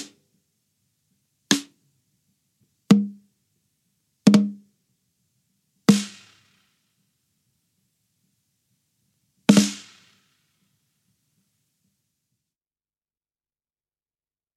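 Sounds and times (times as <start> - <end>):
snare drum: 1.5 - 1.7, 4.3 - 4.6, 5.9 - 6.6, 9.5 - 10.2.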